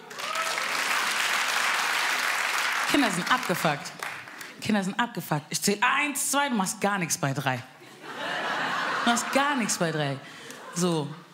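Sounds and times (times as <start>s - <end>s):
audience applause: 0.0s - 4.5s
speech: 2.9s - 4.0s, 4.6s - 7.8s, 9.1s - 11.2s
laughter: 7.8s - 11.3s.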